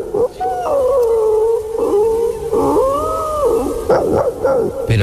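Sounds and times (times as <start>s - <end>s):
person imitating a faraway village dog howling: 0.2s - 4.9s.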